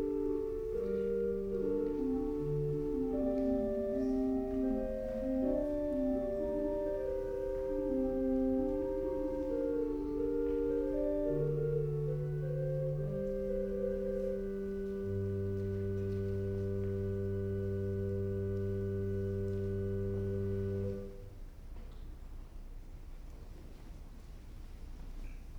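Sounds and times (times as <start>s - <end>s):
flute piece: 0.0s - 21.3s.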